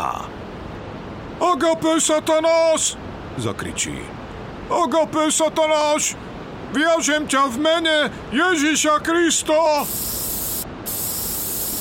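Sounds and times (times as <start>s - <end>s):
speech: 1.4s - 10.2s
spray bottle spritzing holy water with garlic: 9.8s - 11.8s.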